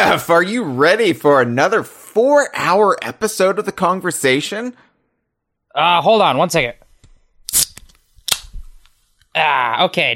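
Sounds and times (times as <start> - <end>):
speech: 0.1 - 4.9, 5.8 - 6.8, 9.4 - 10.1
drink can being cracked open: 7.5 - 8.5.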